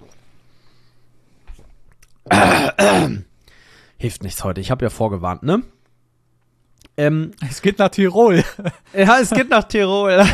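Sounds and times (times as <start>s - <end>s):
speech: 2.3s - 3.2s, 4.0s - 5.8s, 7.0s - 10.3s
loud raspy throat clearing: 2.3s - 3.3s.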